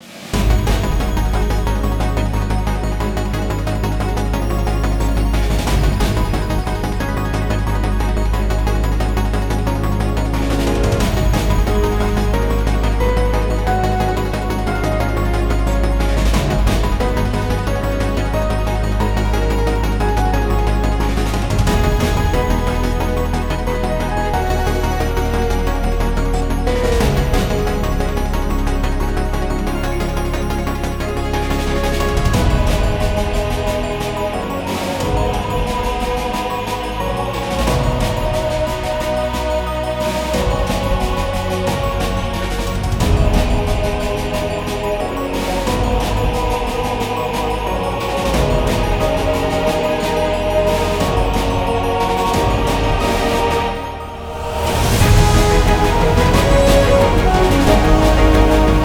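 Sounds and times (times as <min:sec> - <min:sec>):
battle background music for a guild raid: 0:00.0 - 0:58.8.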